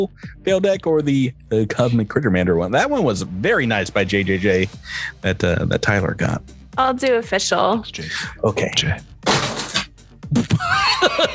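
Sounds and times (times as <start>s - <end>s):
speech: 0.0s - 9.1s, 10.3s - 11.3s
objects swept off a desk crashing down: 9.2s - 9.9s
laughter: 10.3s - 11.3s.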